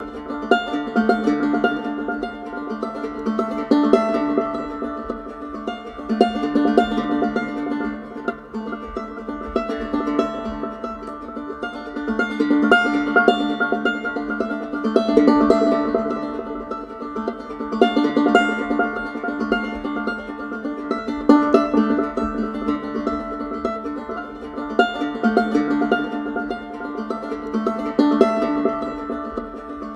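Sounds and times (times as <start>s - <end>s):
banjo: 0.0s - 29.9s.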